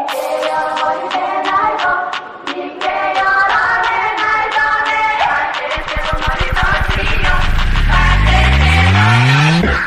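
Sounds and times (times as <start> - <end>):
attitude ringtone background music: 0.1 - 9.8.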